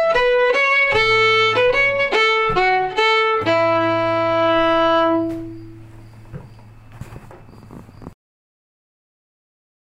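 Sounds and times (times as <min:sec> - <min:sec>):
slow polka: 0:00.0 - 0:05.8.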